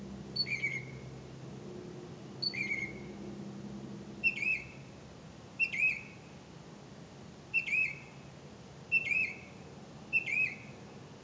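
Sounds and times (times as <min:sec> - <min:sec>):
faint background hiss: 0:00.0 - 0:11.2
bird calls of three sharp whistled notes with curling tail: 0:00.4 - 0:01.1, 0:02.4 - 0:03.1, 0:04.2 - 0:04.8, 0:05.6 - 0:06.2, 0:07.5 - 0:08.2, 0:08.9 - 0:10.8.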